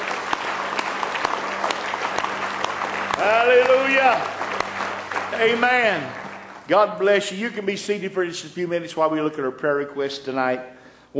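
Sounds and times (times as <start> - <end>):
audience clapping hands in praise: 0.0 - 8.2
speech: 3.2 - 4.5, 5.4 - 11.1.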